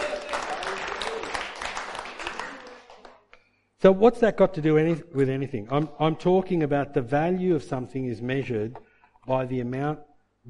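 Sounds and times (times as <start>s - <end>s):
audience applause: 0.0s - 3.3s
speech: 3.8s - 10.4s.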